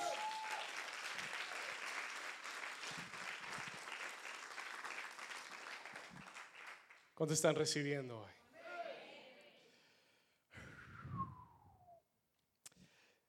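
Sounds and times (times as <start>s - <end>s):
audience applause: 0.0s - 7.0s
speech: 7.2s - 8.4s.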